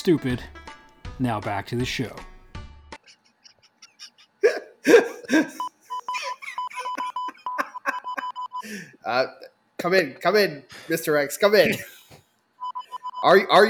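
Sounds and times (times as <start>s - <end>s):
speech: 0.0s - 0.6s, 1.2s - 2.3s, 9.1s - 12.0s, 13.2s - 13.6s
laughter: 3.0s - 8.9s, 11.7s - 12.2s
sharp gasping: 4.4s - 5.6s, 8.6s - 9.0s
robot beeping gibberish Morse code: 5.6s - 8.6s.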